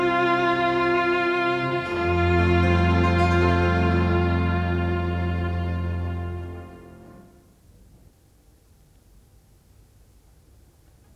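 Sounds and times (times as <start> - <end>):
baroque trio sonata: 0.0 - 7.4.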